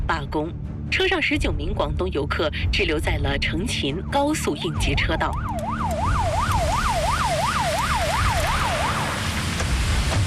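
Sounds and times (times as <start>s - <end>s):
speech: 0.1s - 5.9s
police car siren: 3.9s - 9.4s.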